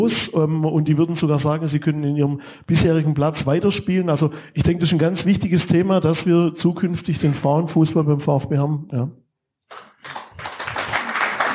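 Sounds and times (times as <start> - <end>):
speech: 0.0 - 10.2
crowd applause: 9.7 - 11.5.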